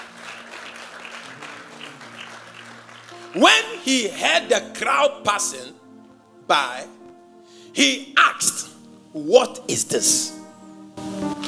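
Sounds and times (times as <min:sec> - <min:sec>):
audience clapping applause: 0:00.0 - 0:03.8
speech: 0:03.3 - 0:05.8, 0:06.5 - 0:07.0, 0:07.7 - 0:10.4.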